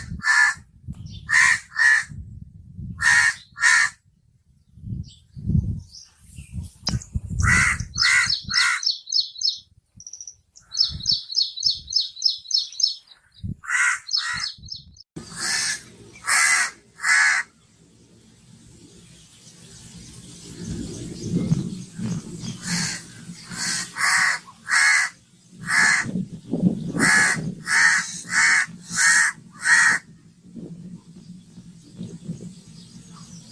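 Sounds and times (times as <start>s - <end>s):
crow cawing: 0.2s - 0.6s, 1.3s - 2.1s, 3.0s - 4.0s, 7.4s - 9.0s, 13.6s - 14.5s, 15.4s - 17.5s, 22.6s - 26.1s, 27.0s - 30.1s
calm bird ambience: 4.5s - 33.5s.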